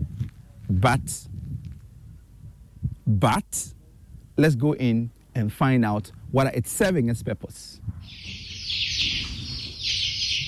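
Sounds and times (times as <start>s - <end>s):
speech: 0.7s - 1.3s, 3.1s - 3.8s, 4.4s - 8.3s
chickens cheeping in a storage warehouse: 8.0s - 10.4s.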